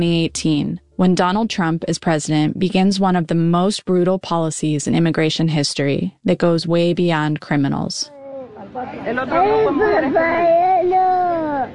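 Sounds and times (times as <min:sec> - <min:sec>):
speech: 0:00.0 - 0:11.7
young children crying and wailing: 0:08.1 - 0:11.7.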